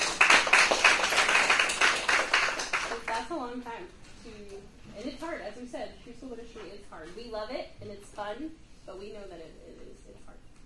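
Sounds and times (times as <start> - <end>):
audience applause: 0.0 - 3.2
speech: 3.2 - 10.5.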